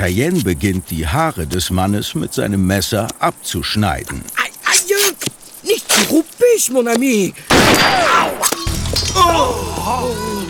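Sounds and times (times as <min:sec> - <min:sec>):
speech: 0:00.0 - 0:04.8, 0:06.0 - 0:08.2
excited voices and shouts: 0:04.2 - 0:10.4
gunshot shooting a knife from a hand: 0:07.5 - 0:08.6.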